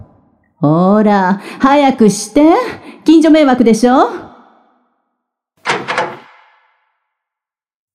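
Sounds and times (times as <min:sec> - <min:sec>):
speech: 0:00.6 - 0:04.3
door swinging open with a heavier thunk: 0:05.6 - 0:06.6
door lock clicking: 0:05.6 - 0:06.7.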